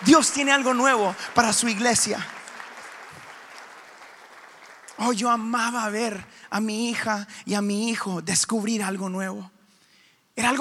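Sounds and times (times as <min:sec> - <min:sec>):
audience applause: 0:00.0 - 0:05.8
speech: 0:00.1 - 0:02.4, 0:05.0 - 0:09.6, 0:10.4 - 0:10.5.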